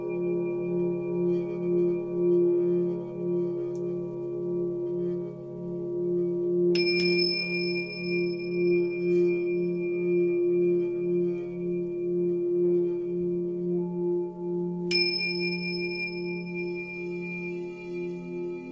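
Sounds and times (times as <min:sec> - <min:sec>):
singing bowls humming: 0:00.0 - 0:18.7
bright metallic singing bowl strikes: 0:06.8 - 0:10.6, 0:14.8 - 0:18.7.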